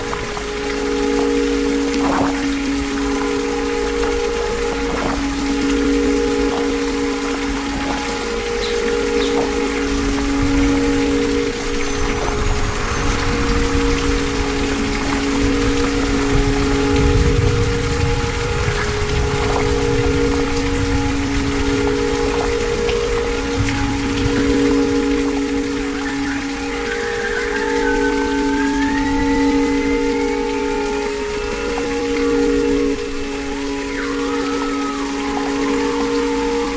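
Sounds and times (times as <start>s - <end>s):
water spring in Italy: 0.0s - 36.7s.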